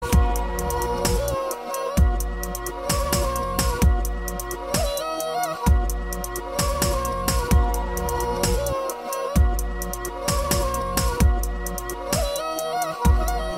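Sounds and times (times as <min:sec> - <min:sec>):
beats: 0:00.0 - 0:13.4.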